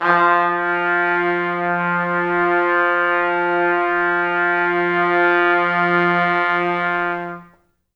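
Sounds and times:
pop brass music: 0.0s - 7.6s.

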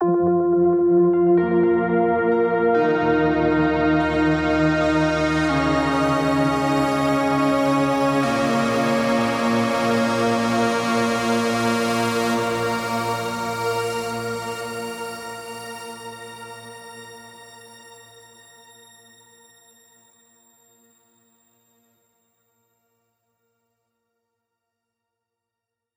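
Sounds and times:
lead melody: 0.0s - 15.7s.

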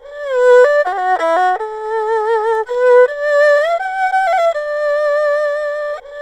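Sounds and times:
erhu playing: 0.0s - 6.1s.

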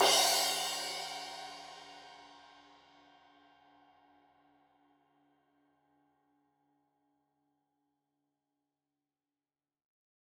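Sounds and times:
15 inch crash cymbal edge hit: 0.0s - 1.9s.

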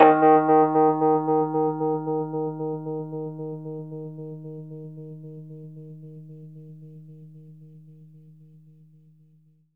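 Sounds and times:
fast Rhodes electric piano in D sharp: 0.0s - 5.6s.

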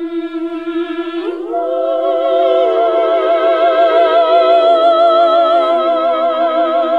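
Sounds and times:
classic vocal singing: 0.0s - 6.9s.

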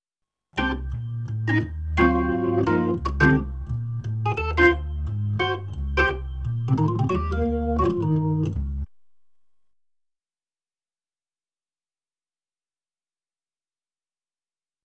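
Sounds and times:
Hammond B3 organ: 0.6s - 8.9s.

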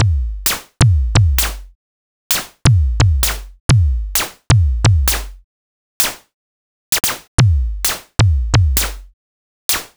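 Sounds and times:
kick drum: 0.0s - 1.8s, 2.6s - 5.4s, 7.0s - 9.1s
snare drum: 0.5s - 1.7s, 2.3s - 3.6s, 4.2s - 5.4s, 6.0s - 6.3s, 7.0s - 7.3s, 7.9s - 9.1s, 9.7s - 9.9s.

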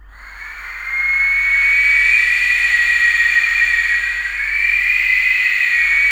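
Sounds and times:
turbines: 0.0s - 6.0s
vocal wind sound: 0.0s - 6.0s.

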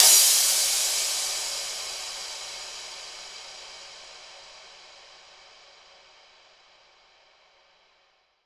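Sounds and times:
cymbal crash one shot with reflection: 0.0s - 5.8s.

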